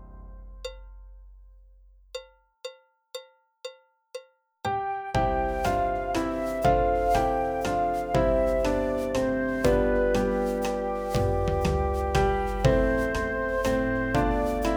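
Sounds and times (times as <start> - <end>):
folk song backing track: 5.2 - 14.7.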